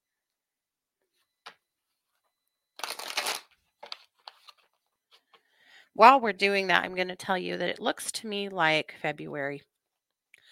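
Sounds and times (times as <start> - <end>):
cards shuffled for a card reading: 2.8 - 4.8
speech: 6.0 - 9.7.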